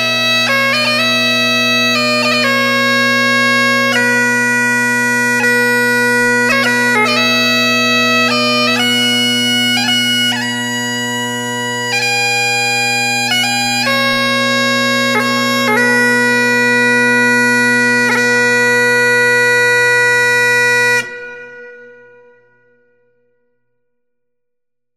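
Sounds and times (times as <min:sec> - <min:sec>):
bagpipes playing a folk song for a wedding: 0:00.0 - 0:22.5.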